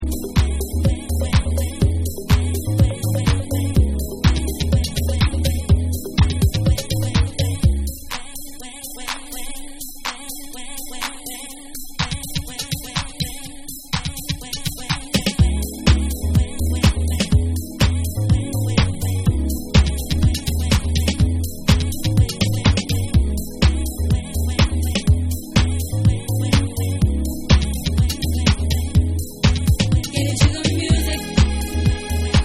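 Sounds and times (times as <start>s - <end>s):
ambient music mix: 0.0s - 7.9s, 15.4s - 32.4s.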